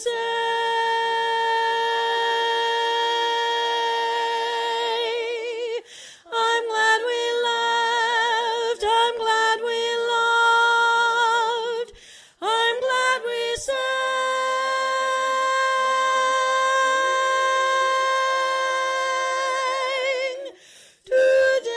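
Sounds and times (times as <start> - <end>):
person singing lead: 0.0 - 21.7.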